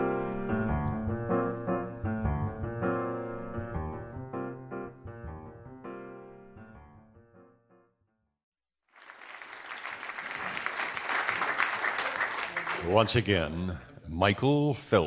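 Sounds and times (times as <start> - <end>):
short instrumental passage: 0.0 - 7.8
audience applause: 8.9 - 13.4
speech: 12.8 - 15.0.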